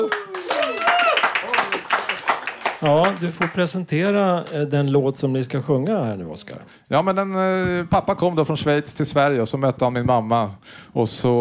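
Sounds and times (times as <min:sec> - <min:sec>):
audience applause for the choir: 0:00.0 - 0:04.6
speech: 0:02.8 - 0:11.3.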